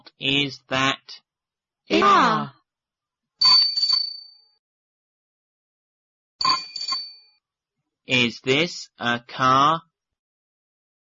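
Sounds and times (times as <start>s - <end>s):
speech: 0.2s - 1.3s, 1.9s - 2.6s, 8.1s - 9.9s
bicycle bell ringing: 3.4s - 4.6s, 6.4s - 7.4s.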